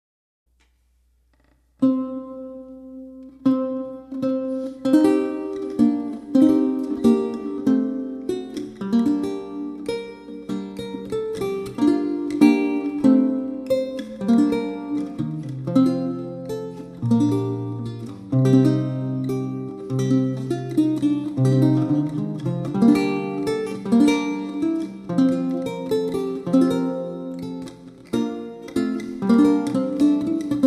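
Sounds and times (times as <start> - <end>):
prelude on lute: 1.3 - 30.6.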